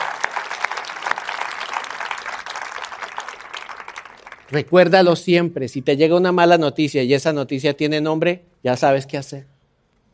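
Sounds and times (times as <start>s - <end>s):
audience applauding: 0.0s - 4.8s
speech: 4.5s - 9.5s.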